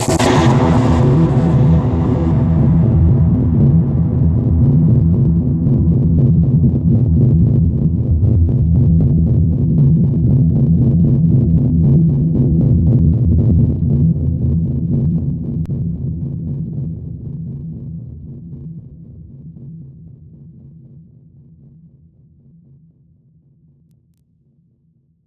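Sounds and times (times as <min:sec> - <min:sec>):
psytrance atmosphere: 0:00.0 - 0:16.3.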